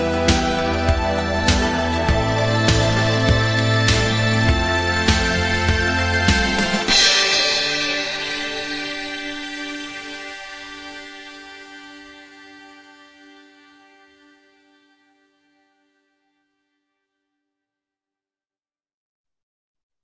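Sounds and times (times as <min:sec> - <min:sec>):
synthpop music: 0:00.0 - 0:13.7.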